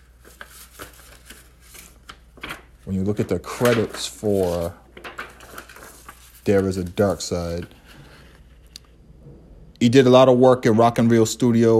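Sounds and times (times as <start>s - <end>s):
paper J-card insert of a CD case unfolding: 0.0s - 8.7s
steady low noise: 0.0s - 11.7s
speech: 2.9s - 4.8s, 6.4s - 7.8s, 9.8s - 11.7s.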